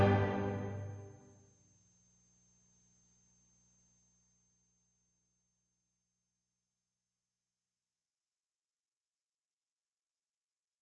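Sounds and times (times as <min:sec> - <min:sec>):
song: 0:00.0 - 0:01.2.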